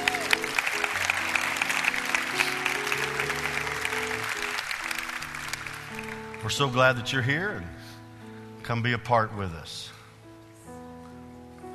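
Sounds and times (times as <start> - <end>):
audience applause for guests: 0.0 - 6.8
sustained organ or keyboard chords: 0.0 - 9.5
speech: 6.4 - 7.8, 8.7 - 10.0.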